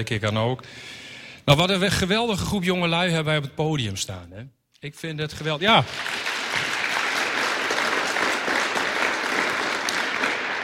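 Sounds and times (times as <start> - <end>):
speech: 0.0 - 6.7
applause: 5.5 - 10.6.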